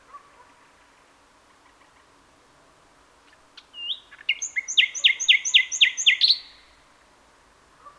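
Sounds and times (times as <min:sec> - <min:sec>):
common nightingale Luscinia megarhynchos song of rapid chirps and trills: 0:03.3 - 0:06.8.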